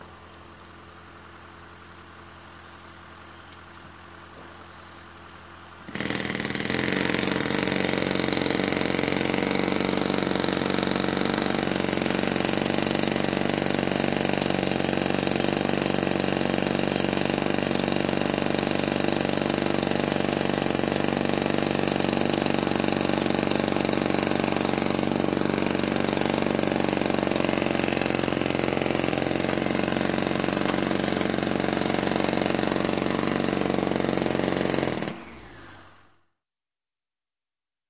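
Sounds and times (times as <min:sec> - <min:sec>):
jackhammer hammering at construction: 0:05.8 - 0:35.4.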